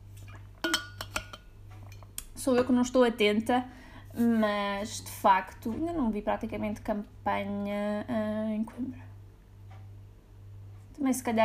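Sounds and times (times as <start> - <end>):
glass clinks from drinking water: 0.6 - 1.5
speech: 2.4 - 9.1, 11.0 - 11.4.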